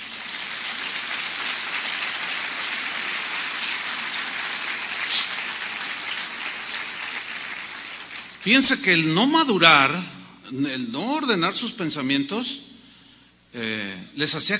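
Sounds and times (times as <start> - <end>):
audience applause: 0.0 - 8.4
speech: 8.4 - 12.6, 13.5 - 14.5.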